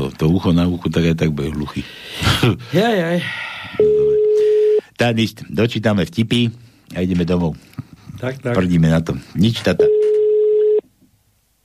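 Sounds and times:
speech: 0.0 - 4.1, 5.0 - 10.1
faint low noise: 0.0 - 11.6
telephone call tone: 3.8 - 4.8, 9.8 - 10.8.

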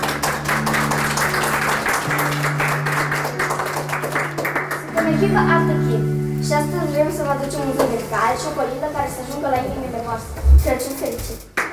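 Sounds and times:
applause: 0.0 - 5.2
speech: 5.2 - 11.5.

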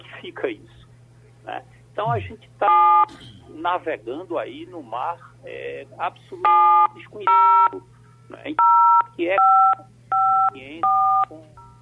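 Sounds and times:
speech: 0.2 - 0.8, 1.4 - 11.5
telephone call tones: 2.7 - 3.1, 6.4 - 7.8, 8.6 - 11.8.

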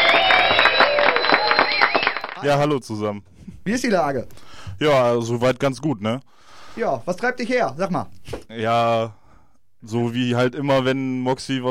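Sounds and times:
crowd applause: 0.0 - 2.4
high-pitched cheers or whistles: 0.0 - 2.4
speech: 2.4 - 9.2, 9.8 - 11.6.

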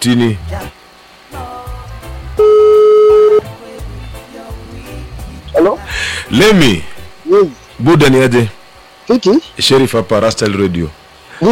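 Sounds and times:
speech: 0.0 - 0.8, 5.6 - 11.4
telephone dial tone: 2.4 - 3.4.

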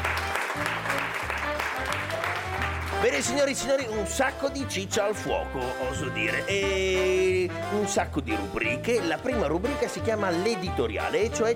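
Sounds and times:
classroom audience applauding: 0.0 - 3.4
speech: 3.0 - 11.5.

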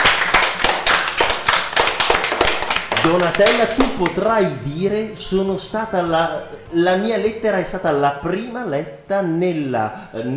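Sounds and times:
applause: 0.0 - 4.2
speech: 3.0 - 10.3.

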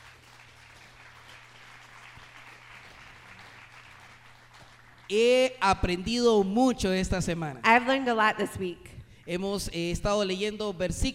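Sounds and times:
audience applause: 0.0 - 5.1
speech: 5.1 - 11.1.

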